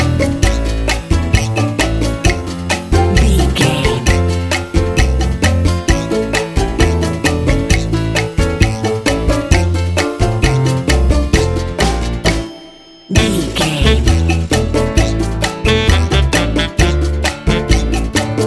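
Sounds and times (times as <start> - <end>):
cha cha cha music: 0.0 - 18.4.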